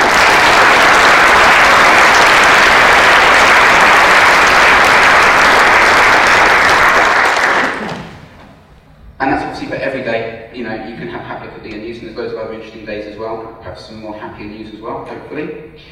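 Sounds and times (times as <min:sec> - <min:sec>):
applause: 0:00.0 - 0:08.3
speech: 0:10.0 - 0:15.9.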